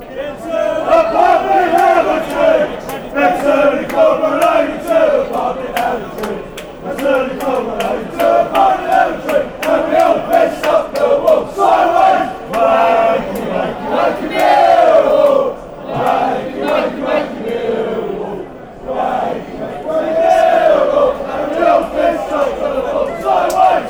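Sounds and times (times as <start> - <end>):
pub crowd chanting: 0.0 - 23.8.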